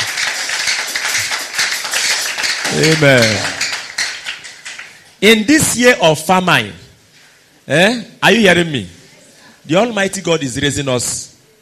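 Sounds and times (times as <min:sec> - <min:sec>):
crowd clapping: 0:00.0 - 0:05.2
speech: 0:02.7 - 0:03.6, 0:05.2 - 0:06.8, 0:07.7 - 0:09.0, 0:09.6 - 0:11.3.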